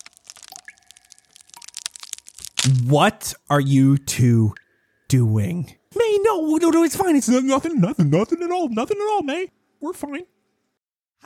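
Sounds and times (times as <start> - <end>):
biting and crunching into a door: 0.0 - 2.9
speech: 2.7 - 10.3.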